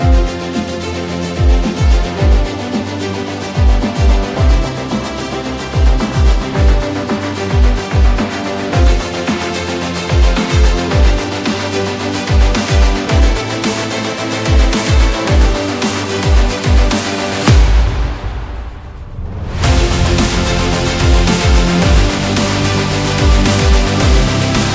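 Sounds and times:
epic bass: 0.0 - 24.7.

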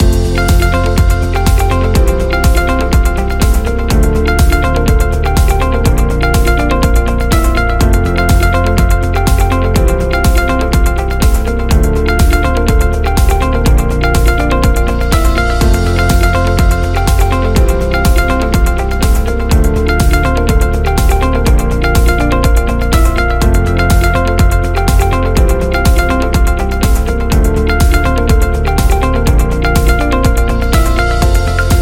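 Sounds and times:
positive corporate music loop: 0.0 - 31.8.

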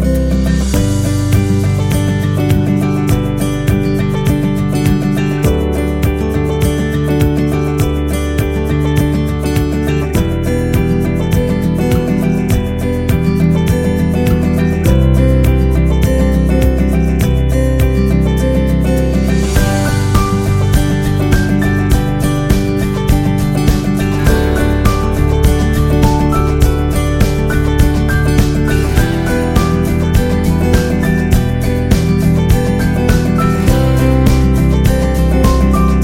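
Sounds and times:
acoustic guitar: 0.0 - 36.0.

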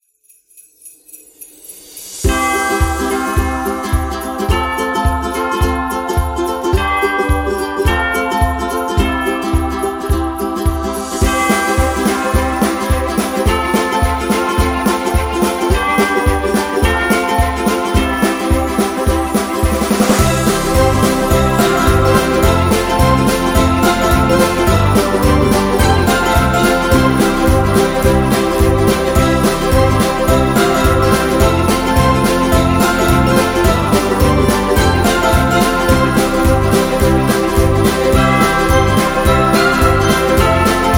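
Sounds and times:
happy Christmas music: 0.1 - 40.9.

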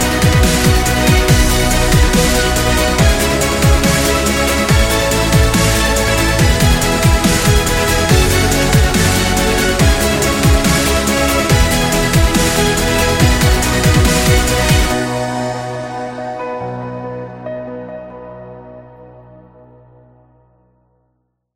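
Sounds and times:
cinematic dubstep music: 0.0 - 16.4.

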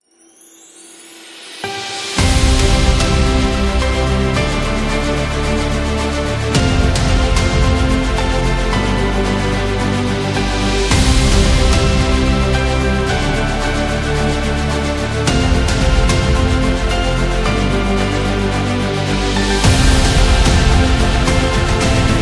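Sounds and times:
epic award sound: 1.1 - 22.2.

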